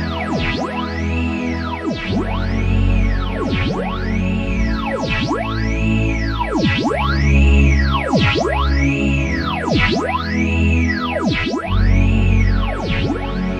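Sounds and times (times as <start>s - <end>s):
mono phaser effect sound: 0.1s - 13.4s.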